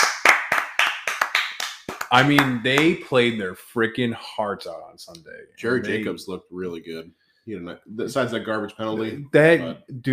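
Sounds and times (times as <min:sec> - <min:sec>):
hand claps: 0:00.0 - 0:03.4
speech: 0:02.1 - 0:10.1.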